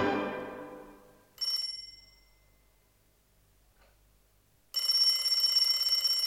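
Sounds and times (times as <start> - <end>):
telephone ringing: 1.4 - 2.7, 4.7 - 6.2.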